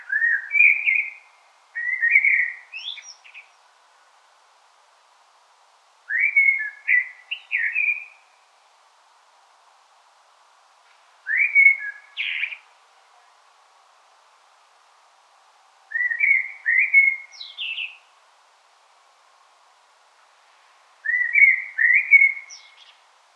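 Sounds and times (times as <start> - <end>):
common blackbird singing: 0.0 - 3.6, 6.1 - 8.2, 11.3 - 12.7, 15.9 - 18.1, 21.0 - 23.0.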